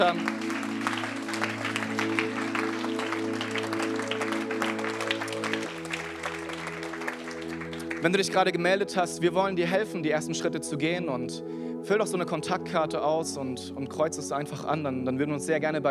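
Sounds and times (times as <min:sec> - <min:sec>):
speech: 0:00.0 - 0:00.4, 0:08.0 - 0:15.8
audience applause: 0:00.0 - 0:08.4.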